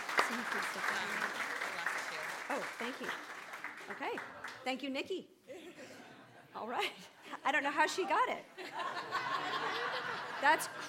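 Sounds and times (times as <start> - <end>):
audience applause: 0.0 - 4.6
speech: 0.3 - 1.5, 2.5 - 5.4, 6.6 - 10.8
laughter: 8.6 - 10.8.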